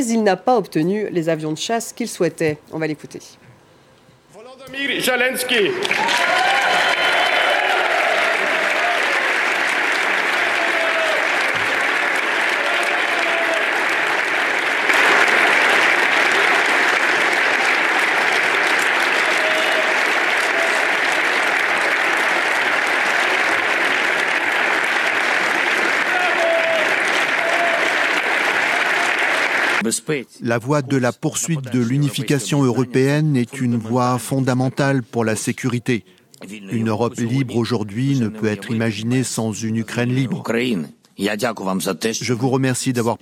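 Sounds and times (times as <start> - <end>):
speech: 0.0 - 3.4, 4.7 - 7.1, 29.9 - 43.2
applause in European Parliament chamber in Brussels: 5.2 - 29.8.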